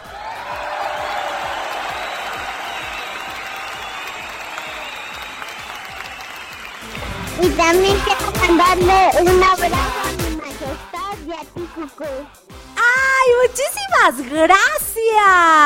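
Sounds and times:
audience applause: 0:00.0 - 0:08.5
speech: 0:07.4 - 0:10.0, 0:11.4 - 0:12.4, 0:13.2 - 0:15.6.

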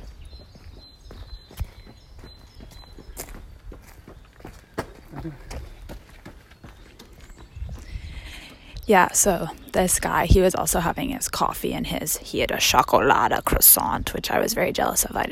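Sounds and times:
running footsteps of a runner approaching past a park bench: 0:00.0 - 0:11.0
speech: 0:05.2 - 0:05.6, 0:08.9 - 0:15.2.

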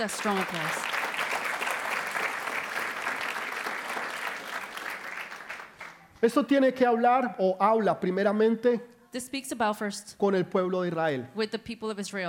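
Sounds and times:
speech: 0:00.0 - 0:01.0, 0:06.2 - 0:12.2
loud audience applause: 0:00.0 - 0:06.1.

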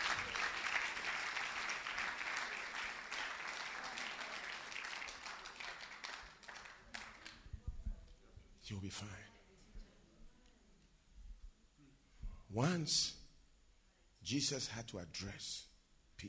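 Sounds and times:
audience clapping: 0:00.0 - 0:07.6
speech: 0:08.7 - 0:09.4, 0:12.5 - 0:13.2, 0:14.2 - 0:16.2.

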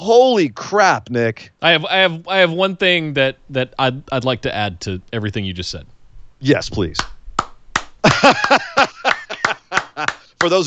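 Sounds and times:
speech: 0:00.0 - 0:07.2, 0:08.2 - 0:08.9, 0:10.0 - 0:10.6
laughter: 0:01.6 - 0:02.6, 0:08.0 - 0:10.6
one person clapping hands: 0:07.0 - 0:10.6.

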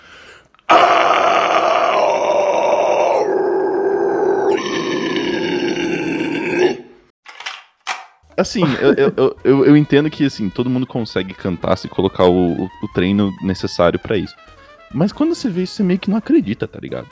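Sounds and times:
short breathy gasps: 0:00.0 - 0:00.7
loud raspy scream: 0:00.7 - 0:07.0
laughter: 0:08.4 - 0:09.9
speech: 0:08.4 - 0:17.1.

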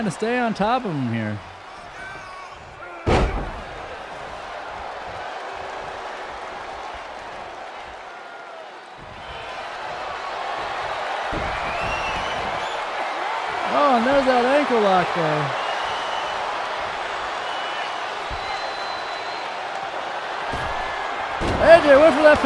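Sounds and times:
speech: 0:00.0 - 0:01.5, 0:13.8 - 0:15.6, 0:21.7 - 0:22.4
crowd roaring: 0:00.0 - 0:22.4
knee strike thud in the WWE 2K23 video game: 0:03.1 - 0:03.6.

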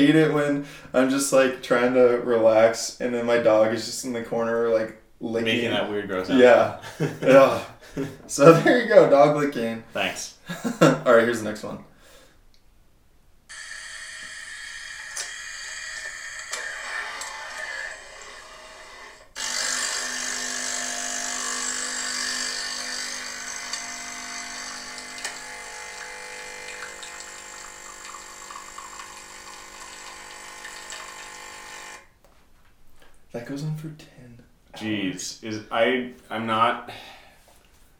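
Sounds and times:
speech: 0:00.0 - 0:11.9, 0:33.5 - 0:34.1, 0:34.8 - 0:37.1
laughter: 0:06.8 - 0:08.8, 0:10.5 - 0:11.1
espresso machine running: 0:13.5 - 0:32.1.

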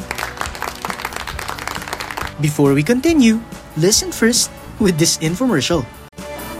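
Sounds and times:
group clapping: 0:00.0 - 0:02.5
speech: 0:02.4 - 0:06.0.

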